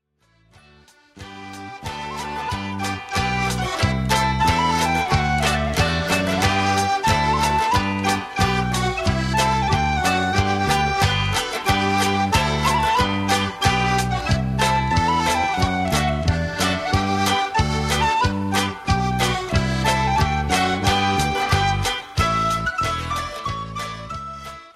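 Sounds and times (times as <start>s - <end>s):
folk dance tune: 0.2s - 24.7s.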